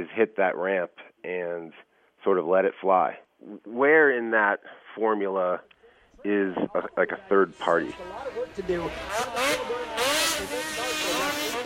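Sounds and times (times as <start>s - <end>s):
speech: 0.0s - 11.6s
snowmobile engines at a snowmobile racing event in Michigan: 7.6s - 11.6s.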